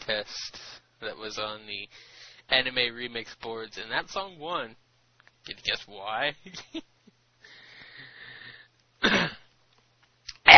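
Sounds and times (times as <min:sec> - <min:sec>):
speech: 0:00.1 - 0:04.8, 0:05.4 - 0:06.9
person coughing: 0:09.0 - 0:09.5
throat clearing: 0:09.0 - 0:09.5.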